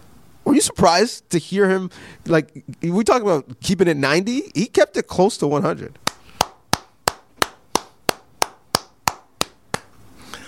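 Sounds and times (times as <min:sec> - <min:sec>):
speech: 0:00.6 - 0:06.2
person clapping hands: 0:06.0 - 0:10.0.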